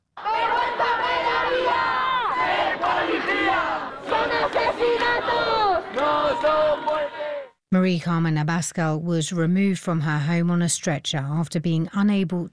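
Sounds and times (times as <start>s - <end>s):
protest crowd chanting and shouting: 0.1s - 7.6s
speech: 7.7s - 12.5s.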